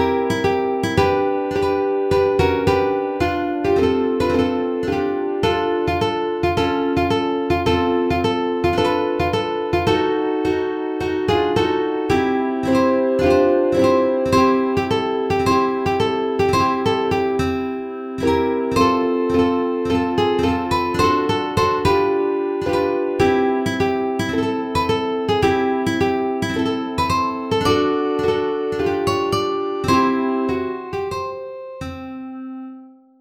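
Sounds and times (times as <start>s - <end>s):
ukulele playing a song: 0.0s - 33.1s.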